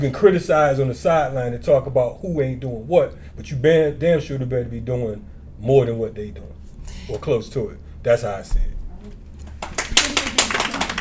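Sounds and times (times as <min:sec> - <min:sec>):
speech: 0:00.0 - 0:09.2
audience applause: 0:09.6 - 0:10.9.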